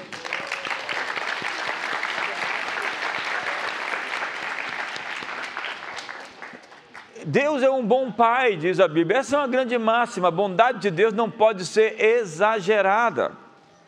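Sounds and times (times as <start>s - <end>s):
audience applause: 0.0s - 7.1s
speech: 7.3s - 13.4s.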